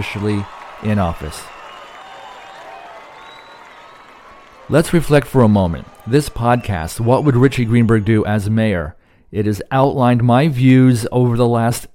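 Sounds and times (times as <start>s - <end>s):
speech: 0.0s - 1.6s, 4.7s - 11.9s
crowd cheering and applauding at a San Francisco mayor's swearing-in ceremony: 0.0s - 8.5s.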